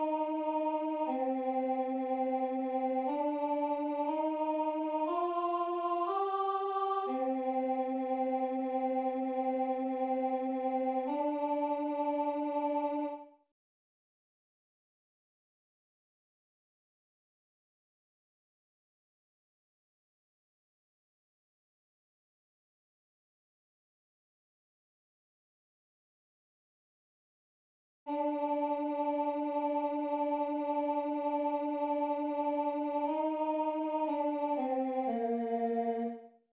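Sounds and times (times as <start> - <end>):
alto voices singing a sacred work: 0.0 - 13.2, 28.1 - 36.1.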